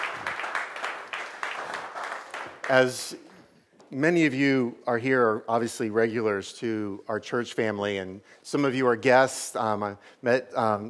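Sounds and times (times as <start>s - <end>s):
church congregation applauding: 0.0s - 3.3s
speech: 2.7s - 3.2s, 3.9s - 10.8s.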